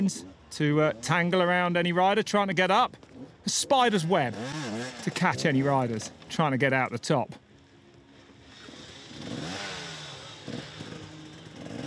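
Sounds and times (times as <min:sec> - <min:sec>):
speech: 0:00.0 - 0:07.4
motorcycle engine revving as riders push the bike uphill: 0:02.9 - 0:06.4, 0:07.7 - 0:11.8.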